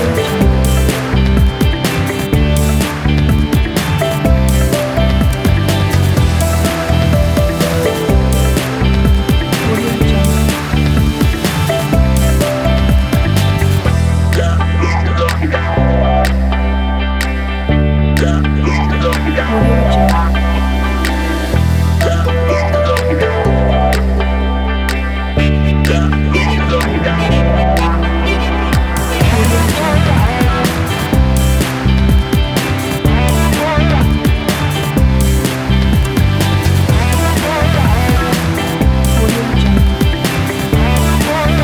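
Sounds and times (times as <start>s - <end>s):
upbeat energetic modern pop music: 0.0s - 41.6s.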